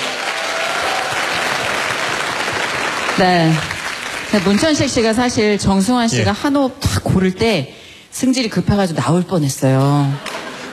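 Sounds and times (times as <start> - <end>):
audience applause: 0.0 - 5.3
speech: 3.2 - 3.7, 4.3 - 10.3.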